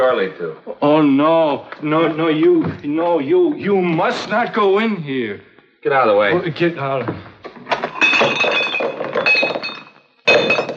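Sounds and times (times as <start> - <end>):
speech: 0.0 - 7.3
old glass bottles clinking: 7.6 - 10.7.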